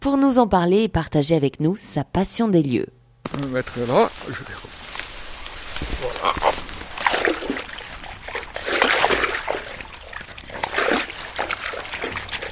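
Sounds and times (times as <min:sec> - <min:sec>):
speech: 0:00.0 - 0:04.8
water trickling from a nearly empty pipe in a reed marsh: 0:04.8 - 0:12.5.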